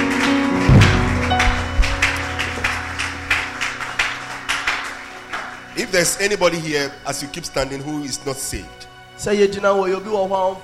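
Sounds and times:
audience clapping hands in a steady rhythmic beat: 0:00.0 - 0:06.6
low thump: 0:00.7 - 0:02.1
speech: 0:05.9 - 0:10.6.

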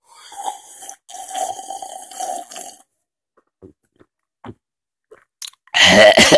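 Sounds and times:
person slurping hot coffee: 0:00.1 - 0:02.8
person choking while drinking hot coffee: 0:00.2 - 0:02.9, 0:05.4 - 0:06.3.

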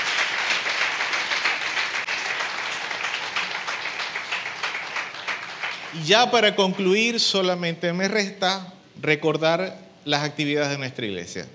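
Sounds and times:
audience applause: 0:00.0 - 0:06.1
speech: 0:05.9 - 0:11.5.

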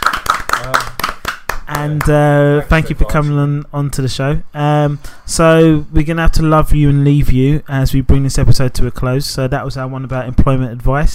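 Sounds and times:
hand claps: 0:00.0 - 0:02.2
speech: 0:01.8 - 0:11.1.

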